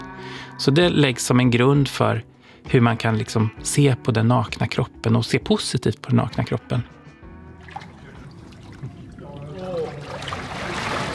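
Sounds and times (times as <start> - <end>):
speech: 0.6 - 7.0
water splashing around the microphone: 7.5 - 11.1.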